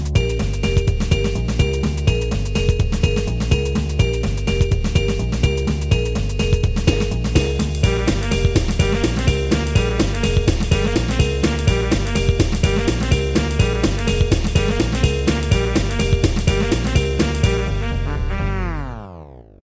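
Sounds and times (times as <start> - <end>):
musical stinger: 0.2 - 19.6.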